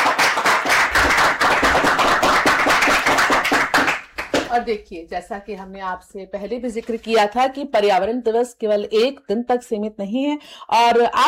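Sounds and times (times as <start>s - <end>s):
children clapping: 0.0s - 4.6s
speech: 4.6s - 11.2s.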